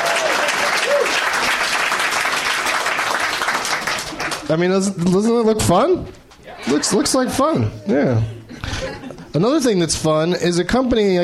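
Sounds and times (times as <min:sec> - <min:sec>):
rising whoops: 0:00.0 - 0:01.3
round of applause: 0:00.0 - 0:04.5
speech: 0:04.5 - 0:08.4, 0:09.3 - 0:11.2
laughter: 0:06.5 - 0:09.4.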